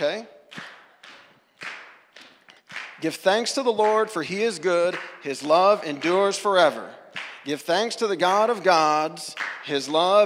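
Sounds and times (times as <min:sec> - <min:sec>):
speech: 0:00.0 - 0:00.7, 0:03.0 - 0:10.2
audience clapping rhythmically: 0:00.0 - 0:10.2
audience slapping knees rhythmically: 0:00.5 - 0:03.0.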